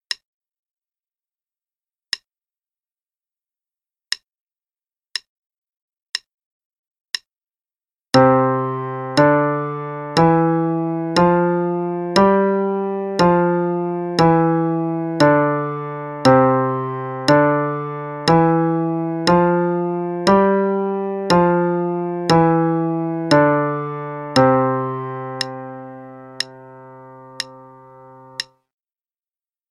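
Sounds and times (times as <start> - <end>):
five-finger piano pattern in C: 8.1 - 28.6.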